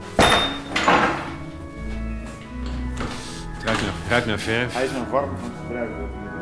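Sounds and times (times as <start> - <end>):
gate knocking and rumbling open: 0.2 - 1.5
speech: 3.8 - 6.3.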